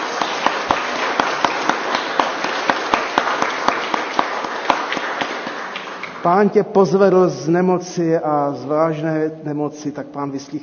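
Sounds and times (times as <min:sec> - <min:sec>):
audience applause: 0:00.0 - 0:06.4
speech: 0:06.2 - 0:10.6.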